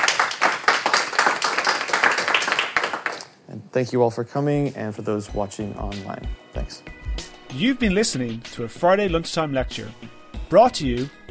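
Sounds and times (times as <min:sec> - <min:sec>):
audience applause after lecture: 0:00.0 - 0:03.3
speech: 0:03.7 - 0:11.2.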